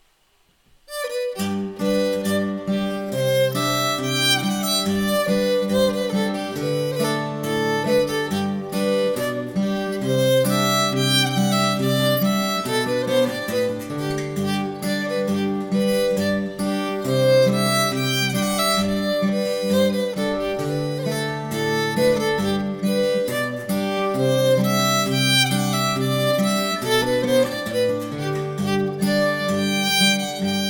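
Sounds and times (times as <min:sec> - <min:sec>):
folk tune playalong: 0:00.9 - 0:30.6.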